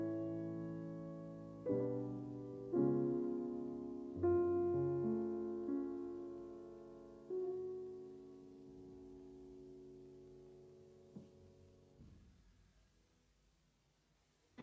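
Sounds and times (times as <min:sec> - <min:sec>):
music piece in F sharp minor, molto: 0:00.0 - 0:10.2.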